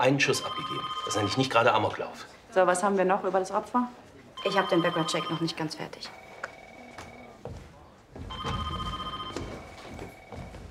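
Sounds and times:
telephone ringing with shrill trilling electronic tone: 0.0 - 2.0, 4.4 - 7.4, 8.3 - 10.6
speech: 0.0 - 6.2.

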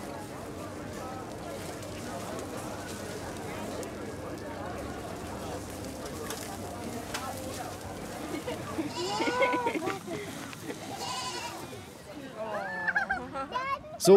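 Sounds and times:
murmur of people talking: 0.0 - 14.1
laughter: 8.1 - 13.7
goats bleating: 8.8 - 9.8, 10.9 - 11.8.

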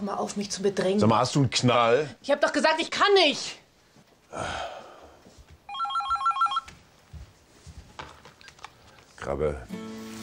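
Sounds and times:
speech: 0.0 - 3.6, 4.3 - 4.8, 9.2 - 9.9
telephone ringing: 5.7 - 6.7.

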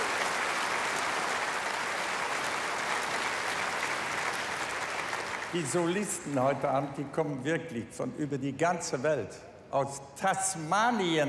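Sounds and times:
audience clapping: 0.0 - 6.3
speech: 5.5 - 11.2.

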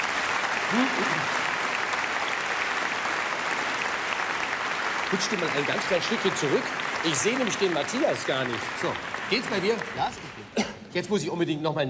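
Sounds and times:
applause: 0.0 - 10.6
speech: 0.7 - 1.4, 5.1 - 11.8.

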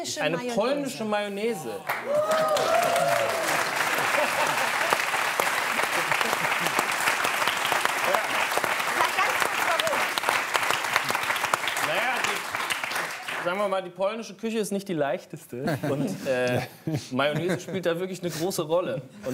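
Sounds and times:
speech: 0.0 - 4.9, 13.4 - 19.3
restrained audience clapping: 1.8 - 13.8
laughter: 2.6 - 7.2, 15.6 - 18.5.

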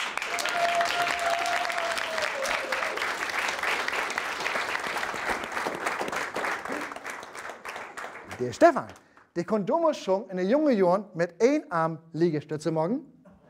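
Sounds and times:
audience applause: 0.0 - 9.1
speech: 8.4 - 13.1.

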